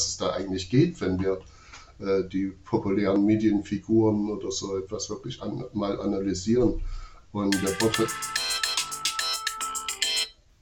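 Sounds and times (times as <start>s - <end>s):
speech: 0.2s - 8.4s
timer alarm ringing: 7.5s - 10.4s.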